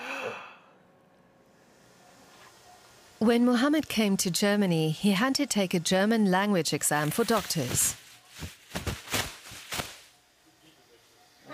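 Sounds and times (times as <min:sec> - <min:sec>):
patient taking a deep breath during a medical examination: 0:00.0 - 0:00.8
speech: 0:03.2 - 0:08.6.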